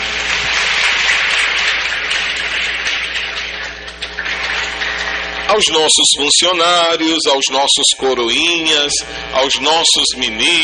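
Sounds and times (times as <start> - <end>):
audience applause: 0.0 - 5.3
speech: 5.5 - 10.6.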